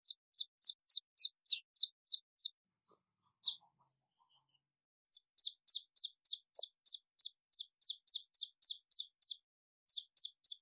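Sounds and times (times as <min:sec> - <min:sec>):
red junglefowl chick peeping: 0:00.0 - 0:02.5, 0:03.3 - 0:03.7, 0:05.2 - 0:10.6.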